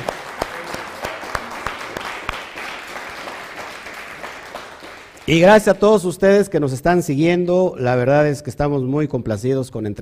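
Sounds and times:
audience applause: 0:00.0 - 0:05.5
speech: 0:05.3 - 0:10.0.

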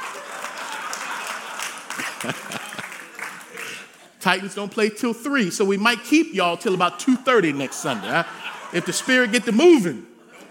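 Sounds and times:
crowd clapping: 0:00.0 - 0:04.2
laughter: 0:00.0 - 0:04.2, 0:06.6 - 0:10.4
speech: 0:02.2 - 0:02.6, 0:04.2 - 0:10.1.

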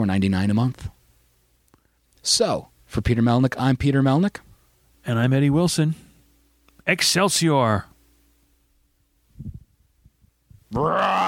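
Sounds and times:
speech: 0:00.0 - 0:01.0, 0:02.2 - 0:06.0, 0:06.8 - 0:07.9, 0:10.7 - 0:11.2
man imitating a monster's roar: 0:10.7 - 0:11.2.

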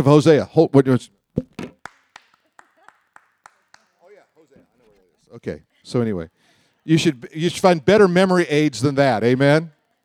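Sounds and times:
speech: 0:00.0 - 0:01.7, 0:05.4 - 0:09.8
hands clapping rhythmically: 0:01.8 - 0:04.4.

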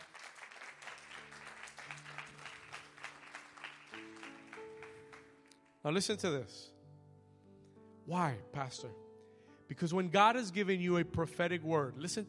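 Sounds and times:
audience clapping hands: 0:00.0 - 0:05.7
speech: 0:05.8 - 0:06.7, 0:08.1 - 0:09.1, 0:09.7 - 0:12.2.

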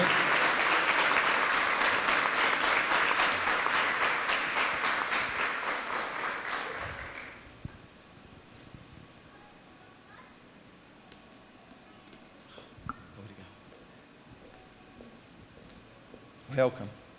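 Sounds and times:
audience applause: 0:00.0 - 0:07.4.

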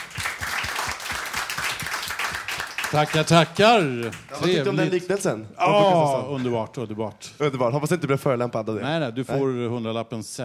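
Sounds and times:
audience applause: 0:00.0 - 0:05.3
speech: 0:02.9 - 0:10.4.

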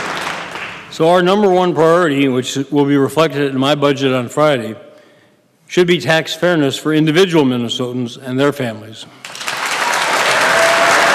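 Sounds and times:
applause in legislative chamber: 0:00.0 - 0:00.9, 0:09.2 - 0:11.1
speech: 0:01.0 - 0:04.9, 0:05.7 - 0:09.3.

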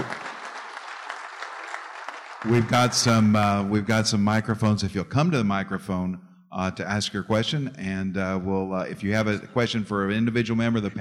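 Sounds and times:
audience applause: 0:00.0 - 0:04.2
speech: 0:02.4 - 0:11.0.

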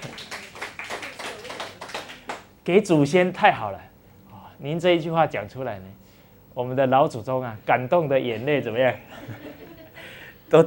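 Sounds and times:
quiet audience applause: 0:00.0 - 0:02.5
speech: 0:02.6 - 0:03.9, 0:04.6 - 0:06.0, 0:06.6 - 0:09.8, 0:10.5 - 0:10.6
laughter: 0:09.0 - 0:10.2.

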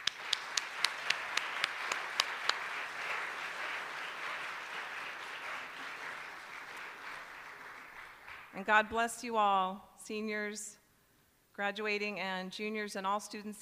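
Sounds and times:
crowd applause: 0:00.0 - 0:08.6
speech: 0:08.6 - 0:10.8, 0:11.6 - 0:13.5.

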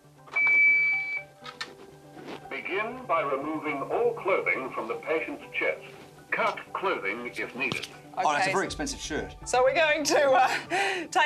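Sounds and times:
defibrillator high-pitched electronic beep: 0:00.3 - 0:01.3
rustling and handling noise: 0:01.4 - 0:02.5, 0:05.8 - 0:06.6
speech: 0:02.8 - 0:11.2.

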